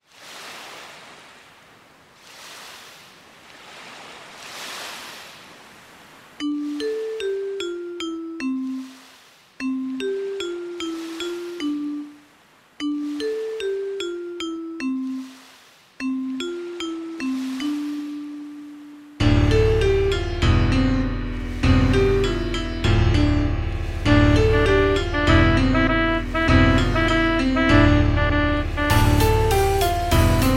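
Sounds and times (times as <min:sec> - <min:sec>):
jazz music: 0:06.4 - 0:09.0, 0:09.6 - 0:12.2, 0:12.8 - 0:15.3, 0:16.0 - 0:30.5.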